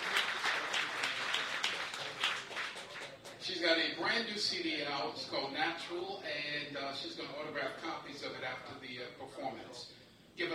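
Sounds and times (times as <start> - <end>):
audience applauding: 0.0 - 3.4
speech: 3.6 - 10.5.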